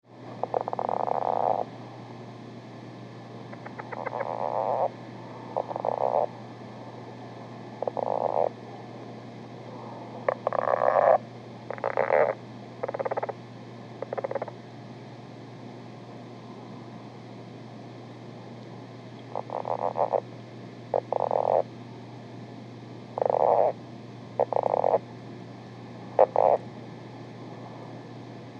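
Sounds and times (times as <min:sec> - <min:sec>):
low steady hum: 0:00.0 - 0:28.5
lowland leopard frog croaking: 0:00.4 - 0:01.7, 0:03.5 - 0:04.9, 0:05.5 - 0:06.4, 0:07.8 - 0:08.6, 0:10.2 - 0:13.4, 0:14.0 - 0:14.6, 0:19.2 - 0:20.3, 0:20.9 - 0:21.7, 0:23.2 - 0:23.8, 0:24.4 - 0:25.1, 0:26.2 - 0:26.6.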